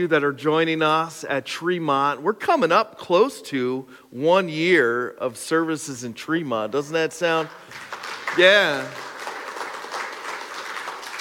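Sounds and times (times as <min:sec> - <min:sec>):
speech: 0:00.0 - 0:09.1
church audience clapping: 0:07.3 - 0:11.1.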